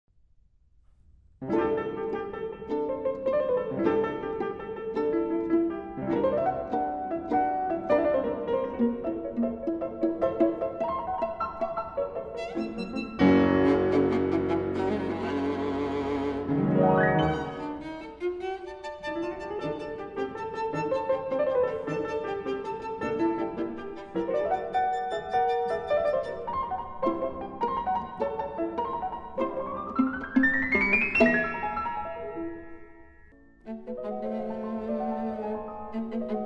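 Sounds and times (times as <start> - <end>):
viola sonata: 1.4 - 32.6, 33.3 - 36.4.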